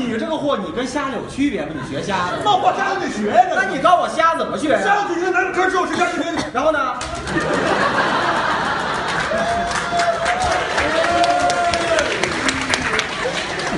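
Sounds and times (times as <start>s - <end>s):
speech: 0.1s - 8.1s
laughter: 1.5s - 3.9s, 7.0s - 13.7s
audience applause: 7.0s - 13.7s.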